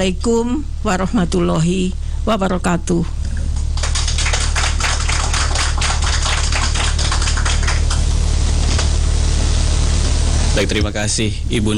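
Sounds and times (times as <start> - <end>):
speech: 0.0 - 3.2, 10.6 - 11.7
audience applause: 3.3 - 10.9.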